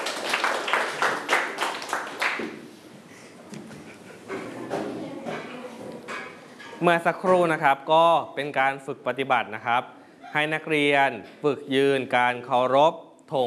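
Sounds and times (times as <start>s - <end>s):
students clapping: 0.0s - 2.6s
speech: 6.8s - 13.4s.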